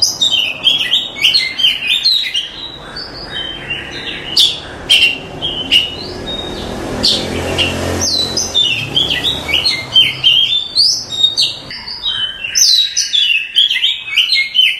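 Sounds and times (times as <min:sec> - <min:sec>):
oriental magpie-robin singing: 0:00.0 - 0:14.7.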